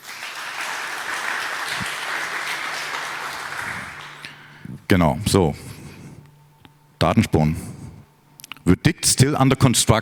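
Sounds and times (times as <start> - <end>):
audience applause: 0.0 - 4.3
speech: 4.9 - 5.7, 7.0 - 7.7, 8.7 - 10.0.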